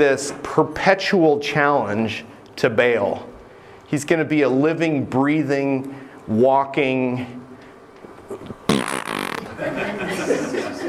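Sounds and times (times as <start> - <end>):
speech: 0.0 - 3.3, 3.9 - 7.4
blown raspberry, Bronx cheer: 8.3 - 9.6
laughter: 9.4 - 10.8.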